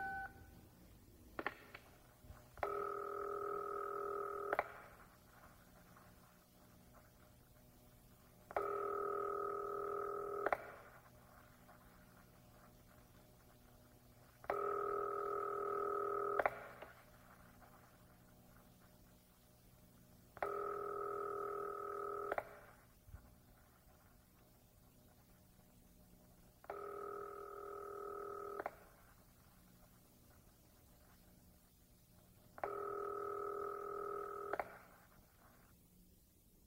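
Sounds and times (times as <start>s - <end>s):
telephone line tones on a New York Telephone dial-a-prayer line: 0.0s - 0.6s, 2.6s - 4.7s, 8.5s - 10.7s, 14.5s - 16.8s, 20.4s - 22.6s, 26.6s - 28.8s, 32.6s - 34.8s
telephone line hiss: 0.0s - 0.8s, 1.4s - 25.7s, 26.3s - 31.4s, 32.2s - 35.7s.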